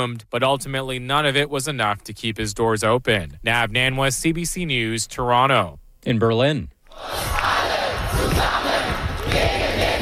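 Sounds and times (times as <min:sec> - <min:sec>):
speech: 0:00.0 - 0:07.5
crowd chanting at a protest rally in Berlin: 0:06.9 - 0:10.0.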